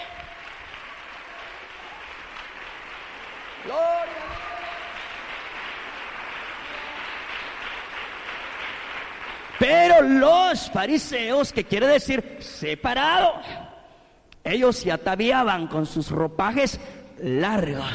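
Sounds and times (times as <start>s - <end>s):
audience applause: 0.0s - 10.3s
speech: 3.6s - 3.9s, 9.6s - 13.6s, 14.4s - 17.9s.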